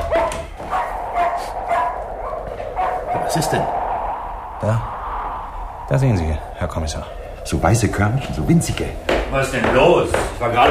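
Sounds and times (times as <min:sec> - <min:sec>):
dog barking: 0:00.0 - 0:03.4
speech: 0:03.4 - 0:03.8, 0:04.6 - 0:04.9, 0:05.9 - 0:10.6.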